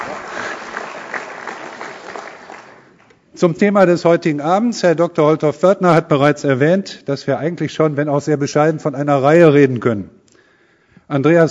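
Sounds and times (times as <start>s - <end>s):
audience applause: 0.0s - 3.1s
speech: 3.4s - 10.2s, 11.1s - 11.4s.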